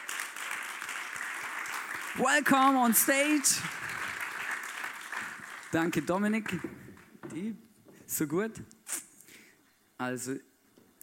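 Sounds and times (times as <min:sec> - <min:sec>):
audience clapping: 0:00.0 - 0:07.2
man calling out an announcement: 0:02.2 - 0:03.7
speech: 0:02.2 - 0:03.8, 0:05.7 - 0:08.8, 0:10.0 - 0:10.5.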